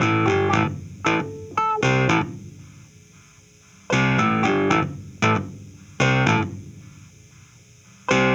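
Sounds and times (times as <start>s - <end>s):
70s analog funk disco clavinet: 0.0s - 2.3s, 3.9s - 5.4s, 8.1s - 8.3s.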